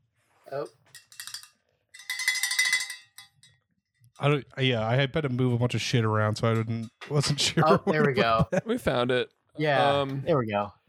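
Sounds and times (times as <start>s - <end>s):
speech: 0.5s - 1.0s, 4.2s - 10.8s
bright metallic bell ringing: 0.9s - 3.5s
laughter: 7.1s - 9.2s.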